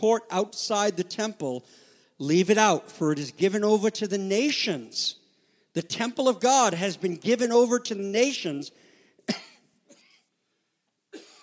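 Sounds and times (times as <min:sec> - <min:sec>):
speech: 0:00.0 - 0:05.2, 0:05.8 - 0:09.5
coughing from a bronchial illness: 0:09.2 - 0:10.4, 0:11.1 - 0:11.4.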